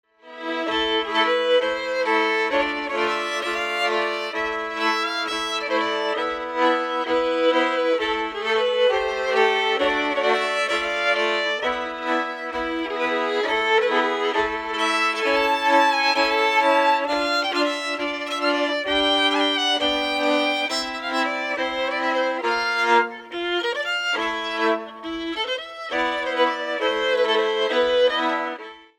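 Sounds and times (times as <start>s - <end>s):
schottische dance tune: 0.3s - 28.7s.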